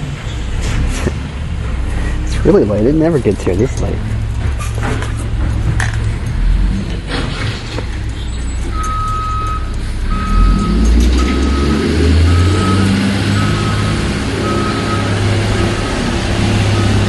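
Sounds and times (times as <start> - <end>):
garbage truck diesel engine rumbling: 0.0 - 17.0
speech: 2.4 - 4.2
garbage truck backup alarm beeping: 8.4 - 17.0.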